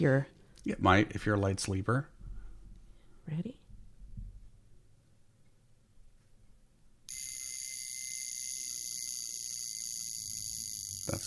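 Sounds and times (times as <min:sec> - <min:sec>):
speech: 0:00.0 - 0:02.1, 0:03.3 - 0:03.6
vintage mechanical alarm watch ringing: 0:07.1 - 0:11.2.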